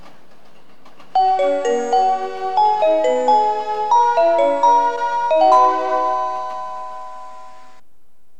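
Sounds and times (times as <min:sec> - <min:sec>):
limited express train in Kyoto: 0:00.0 - 0:07.8.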